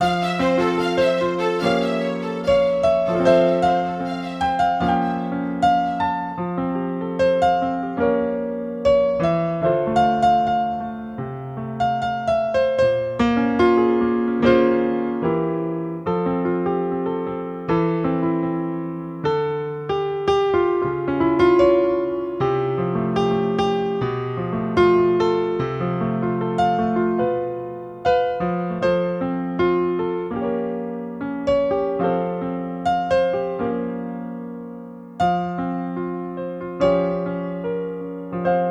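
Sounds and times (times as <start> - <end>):
solo piano: 0.0 - 38.6.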